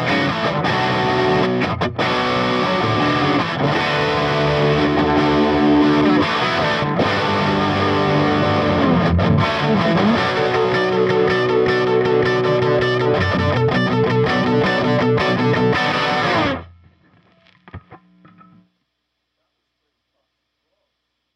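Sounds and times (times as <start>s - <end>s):
distorted electric guitar through a valve amp: 0.0s - 18.7s.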